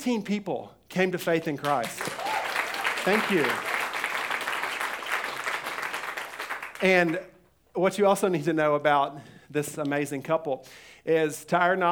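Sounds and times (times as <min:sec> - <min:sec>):
speech: 0:00.0 - 0:02.2, 0:03.0 - 0:03.7, 0:06.8 - 0:11.8
audience clapping: 0:01.6 - 0:07.3.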